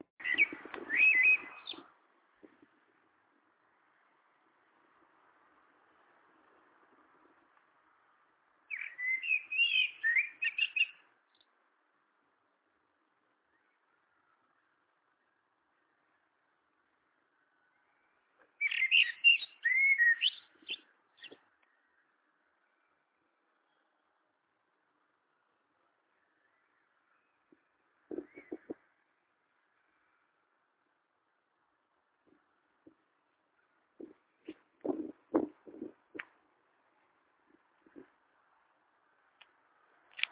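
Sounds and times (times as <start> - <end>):
blackbird singing: 0.2 - 1.9, 8.7 - 11.4, 17.7 - 24.0, 26.1 - 29.1.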